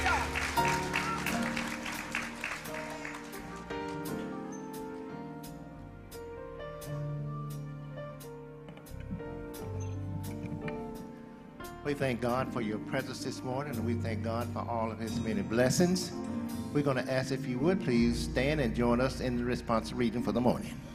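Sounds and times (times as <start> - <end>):
audience clapping: 0.0 - 4.4
sustained organ or keyboard chords: 0.0 - 20.4
speech: 11.9 - 20.9.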